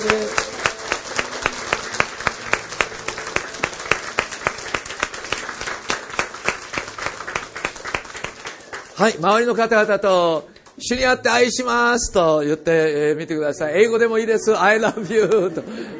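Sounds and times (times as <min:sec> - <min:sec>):
audience applause: 0:00.0 - 0:09.6
speech: 0:09.0 - 0:15.9
laughter: 0:14.7 - 0:15.9.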